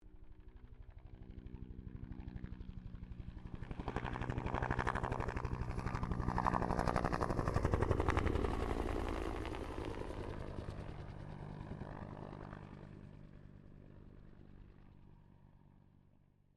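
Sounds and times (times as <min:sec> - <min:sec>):
Bell UH-1 Iroquois helicopter passing: 0:00.0 - 0:15.6.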